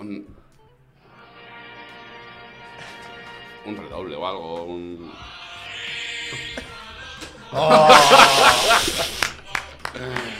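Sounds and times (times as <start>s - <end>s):
speech: 0.1s - 0.4s, 3.6s - 5.4s, 6.3s - 6.8s, 7.5s - 9.2s, 10.0s - 10.3s
laughter: 6.3s - 10.3s
applause: 9.2s - 10.3s.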